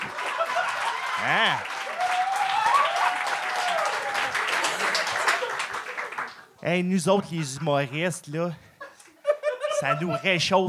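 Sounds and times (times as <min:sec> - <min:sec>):
laughter: 0:00.0 - 0:01.7, 0:04.6 - 0:06.1, 0:07.1 - 0:10.6
crowd whoops: 0:00.0 - 0:04.8
crowd applause: 0:00.0 - 0:06.6
speech: 0:01.2 - 0:01.8, 0:06.6 - 0:08.7, 0:09.8 - 0:10.6.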